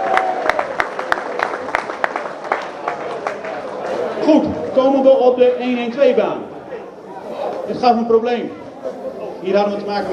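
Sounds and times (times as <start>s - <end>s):
audience applause: 0.0s - 4.0s
steady noise: 0.0s - 10.1s
speech: 5.2s - 6.5s, 7.7s - 8.6s, 9.4s - 10.1s.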